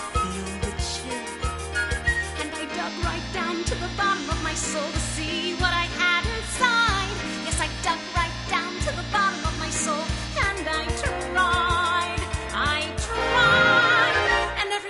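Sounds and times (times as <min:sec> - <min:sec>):
chorus singing: 0:00.1 - 0:14.7.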